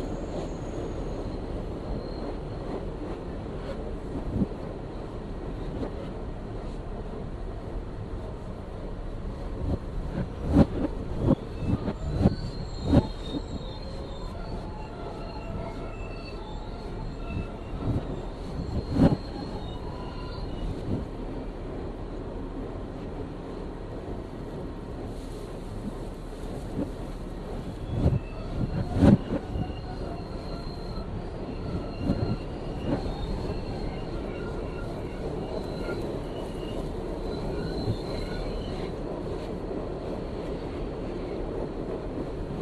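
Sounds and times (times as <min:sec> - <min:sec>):
3 train subway rumble between Clark Street and Atlantic Avenue in Brooklyn: 0:00.0 - 0:42.5
faint high squeals: 0:11.2 - 0:21.0, 0:27.6 - 0:39.0.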